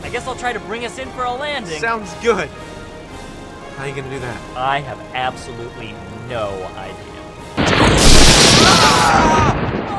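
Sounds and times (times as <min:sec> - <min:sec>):
speech: 0:00.1 - 0:02.7, 0:03.8 - 0:08.1, 0:09.0 - 0:09.9
lightning strike boom: 0:07.6 - 0:09.9.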